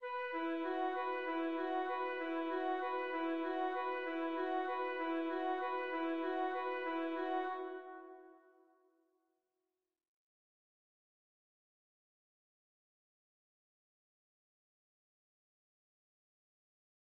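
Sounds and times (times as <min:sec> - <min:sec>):
woodwinds playing: 0:00.0 - 0:08.4.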